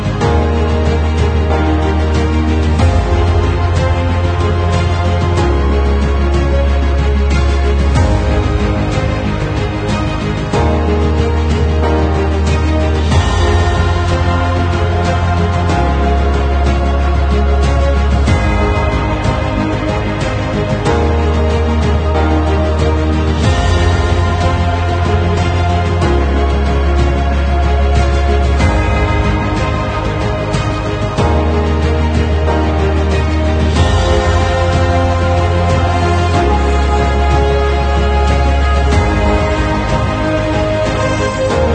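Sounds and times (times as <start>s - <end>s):
dynamic epic cinematic music: 0.0s - 41.7s.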